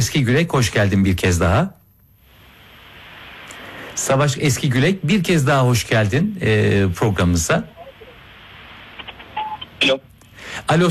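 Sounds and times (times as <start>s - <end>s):
speech: 0.0s - 1.8s, 4.0s - 7.8s, 9.8s - 10.8s
telephone dialing tones as a radio host calls a guest: 9.4s - 9.7s.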